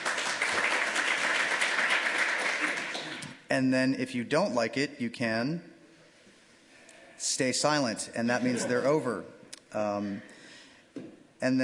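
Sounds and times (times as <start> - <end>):
audience applause: 0.0 - 3.3
speech: 3.5 - 5.7, 7.4 - 10.3, 11.4 - 11.6.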